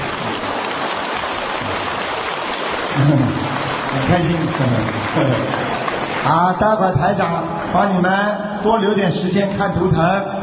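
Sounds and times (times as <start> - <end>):
audience applause: 0.0 - 7.3
speech: 3.0 - 3.4, 4.0 - 10.3.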